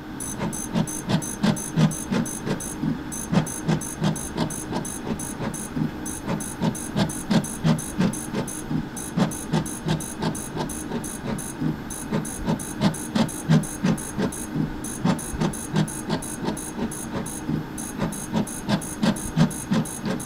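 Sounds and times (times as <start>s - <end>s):
fluorescent plate reader clicking and humming in a laboratory: 0.0s - 20.2s.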